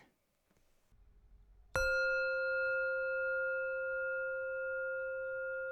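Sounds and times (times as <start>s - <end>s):
meditation bell ringing: 1.8s - 5.6s.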